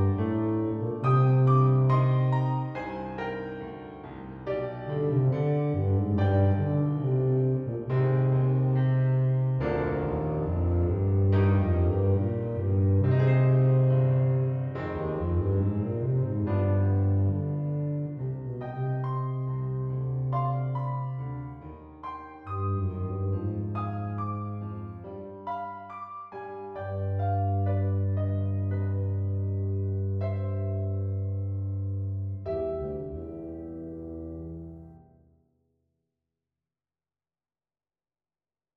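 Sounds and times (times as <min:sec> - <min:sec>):
E-flat or B-flat bass tuba playing: 0:00.0 - 0:03.0, 0:04.8 - 0:21.5, 0:22.5 - 0:25.1, 0:26.9 - 0:35.0.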